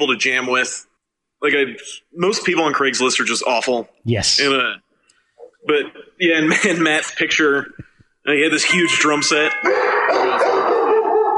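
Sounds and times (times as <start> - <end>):
speech: 0.0 - 4.8, 5.6 - 10.6
dogs barking: 9.6 - 11.3.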